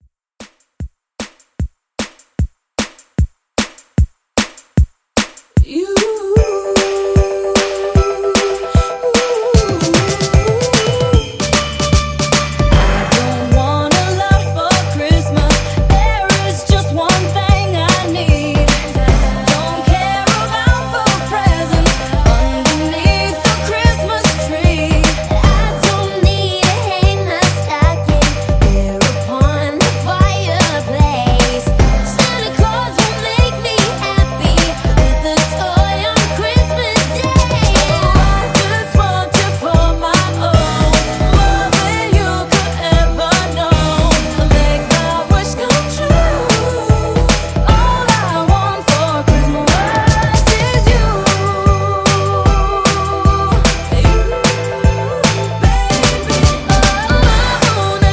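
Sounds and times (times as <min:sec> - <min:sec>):
drum sound: 0:00.4 - 0:58.1.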